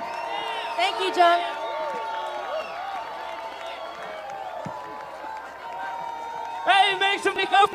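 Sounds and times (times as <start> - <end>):
audience applause: 0.0 - 7.7
speech: 0.8 - 1.6, 7.1 - 7.7.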